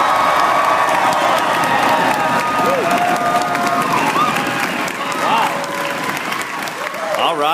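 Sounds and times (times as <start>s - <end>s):
scattered whoops and shouts: 0.0s - 5.9s
live studio audience clapping: 0.0s - 7.5s.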